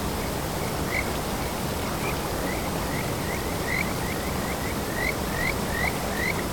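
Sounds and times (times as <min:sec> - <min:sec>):
kajika frogs singing in stream: 0:00.2 - 0:06.4.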